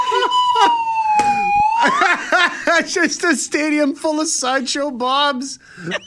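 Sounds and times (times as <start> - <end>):
laughter: 0.0 - 1.0, 1.7 - 3.4, 5.8 - 6.0
slide whistle: 0.0 - 2.1
speech: 2.9 - 6.0.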